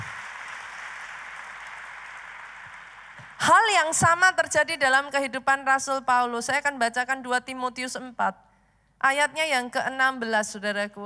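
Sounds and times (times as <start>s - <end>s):
audience applause: 0.0s - 3.5s
speech: 3.4s - 11.0s.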